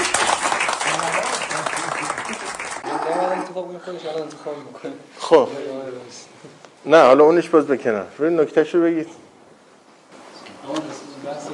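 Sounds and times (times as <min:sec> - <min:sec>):
audience applause for someone's health: 0:00.0 - 0:03.0
speech: 0:03.6 - 0:09.2.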